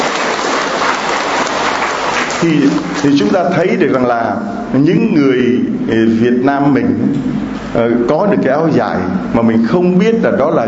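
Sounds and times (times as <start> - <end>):
audience applause at a Vietnamese-language sermon: 0.0 - 3.1
speech: 2.4 - 10.6.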